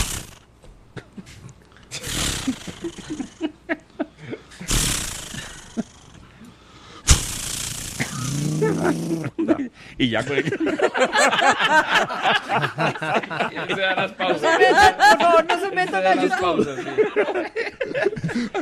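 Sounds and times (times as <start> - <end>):
voice imitating a chainsaw being started: 0.0 - 0.4, 2.0 - 3.4, 4.7 - 6.2, 7.1 - 9.4
laughter: 2.4 - 4.6, 8.4 - 18.6
speech: 8.9 - 18.6.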